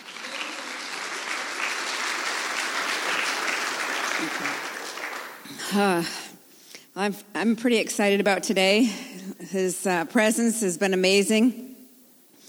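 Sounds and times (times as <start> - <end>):
audience hand clap applause: 0.0 - 5.8
speech: 4.2 - 4.7, 5.7 - 6.4, 7.0 - 11.7.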